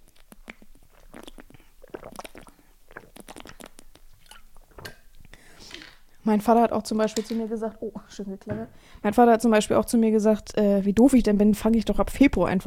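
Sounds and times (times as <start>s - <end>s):
person sipping water: 0.0s - 6.2s
soft breaths: 5.2s - 6.2s, 8.7s - 9.1s
speech: 6.3s - 12.6s.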